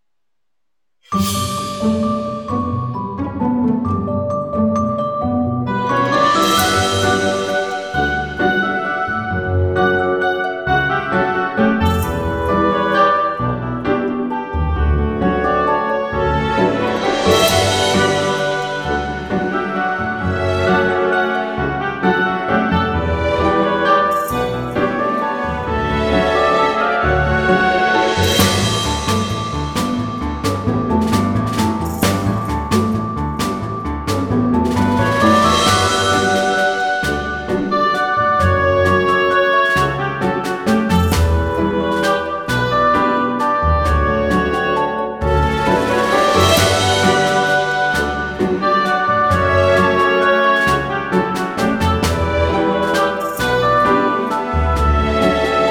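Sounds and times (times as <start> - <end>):
funny AI-generated wedding music: 1.1 - 55.6.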